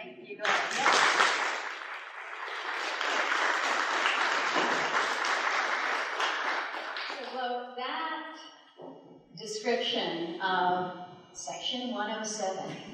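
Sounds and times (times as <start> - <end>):
audience applause: 0.4 - 7.3
speech: 9.9 - 12.9.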